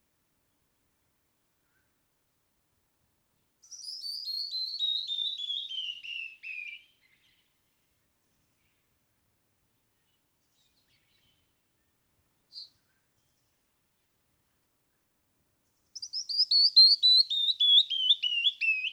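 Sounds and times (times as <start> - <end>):
canyon wren song: 3.6 - 7.6, 10.0 - 13.4, 15.9 - 18.9.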